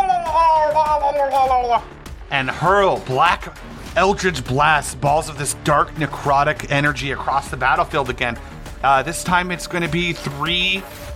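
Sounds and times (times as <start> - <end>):
voice imitating gurgling scream: 0.0 - 1.8
speech: 1.2 - 11.1.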